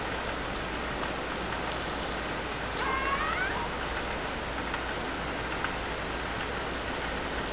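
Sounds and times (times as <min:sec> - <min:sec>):
steady hiss: 0:00.2 - 0:07.5
low underwater noise: 0:01.3 - 0:07.5
killer whale call whistles: 0:01.7 - 0:04.4.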